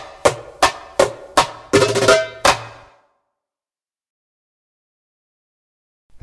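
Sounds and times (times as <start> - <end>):
djembe: 0.0 - 2.8.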